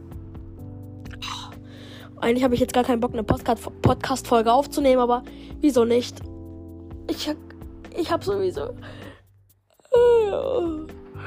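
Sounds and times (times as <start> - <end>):
person yawning: 1.1 - 1.6, 9.8 - 11.2
speech: 2.2 - 6.3, 7.1 - 9.1, 10.0 - 11.2.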